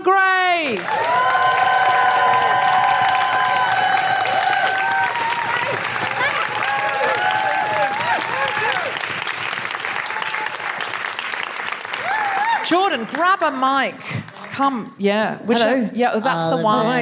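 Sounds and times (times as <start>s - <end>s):
speech: 0.0s - 1.2s, 12.7s - 16.9s
loud continuous audience applause: 0.6s - 14.6s
audience cheering with high-pitched whoops: 0.8s - 13.0s.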